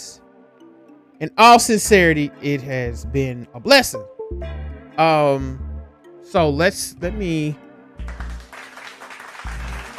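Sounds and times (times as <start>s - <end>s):
speech: 1.2s - 5.7s, 6.3s - 7.6s
hand claps from a crowd: 8.0s - 9.9s.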